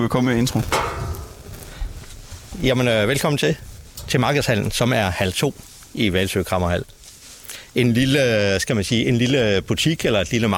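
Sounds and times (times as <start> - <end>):
speech: 0.0 - 1.0, 2.6 - 7.0, 7.7 - 10.5
knocking: 0.7 - 1.8.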